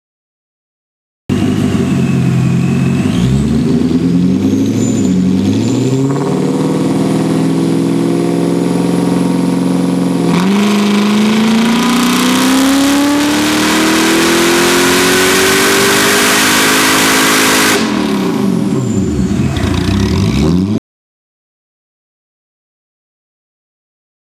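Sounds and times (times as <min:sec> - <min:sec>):
engine dyno run: 0:01.3 - 0:20.8.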